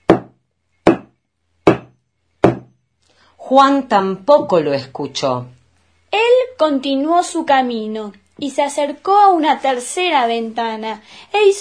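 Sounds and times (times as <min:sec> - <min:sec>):
hammer blows on a nail in wood: 0:00.0 - 0:02.8
speech: 0:03.5 - 0:05.6, 0:06.6 - 0:11.6.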